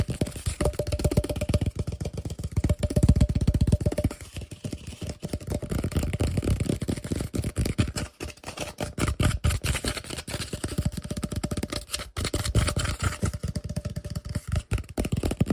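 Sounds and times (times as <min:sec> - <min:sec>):
fast aggressive tapping and scratching: 0:00.0 - 0:15.5.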